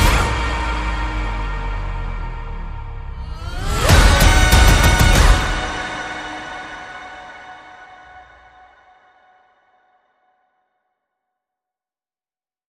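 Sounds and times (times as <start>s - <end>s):
tribal music: 0.0s - 8.4s.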